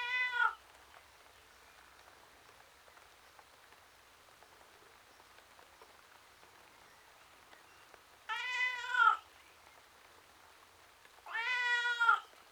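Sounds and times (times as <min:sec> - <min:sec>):
domestic tom cat meowing outside: 0:00.0 - 0:00.6, 0:08.3 - 0:09.2, 0:11.3 - 0:12.3.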